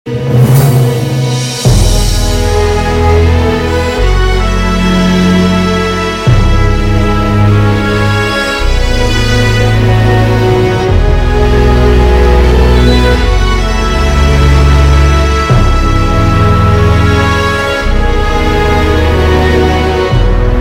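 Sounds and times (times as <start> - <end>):
orchestral music: 0.1 - 20.5.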